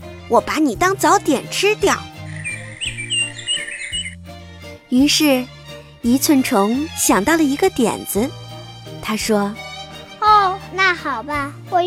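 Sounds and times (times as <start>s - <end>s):
speech: 0.3s - 2.1s, 4.9s - 8.4s, 9.0s - 9.6s, 10.5s - 11.8s
nightingale song: 1.8s - 4.2s.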